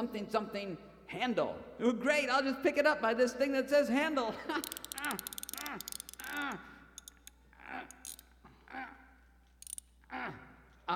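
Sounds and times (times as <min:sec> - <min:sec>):
speech: 0:00.0 - 0:06.7
mechanism ticking: 0:04.6 - 0:08.3, 0:09.5 - 0:10.0.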